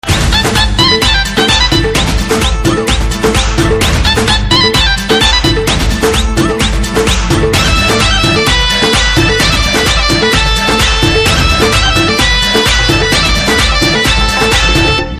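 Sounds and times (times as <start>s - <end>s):
background music ringtone: 0.0s - 15.1s.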